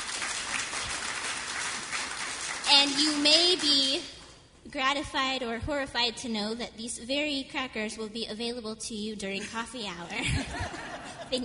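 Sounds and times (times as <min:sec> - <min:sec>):
audience applause: 0:00.0 - 0:02.7
speech: 0:02.8 - 0:11.4
laughter: 0:10.1 - 0:11.4.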